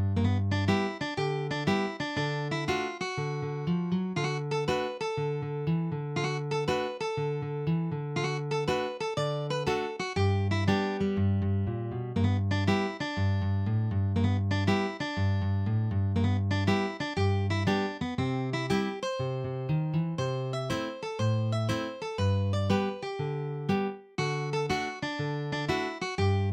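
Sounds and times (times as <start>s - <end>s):
blues music: 0.2s - 26.5s.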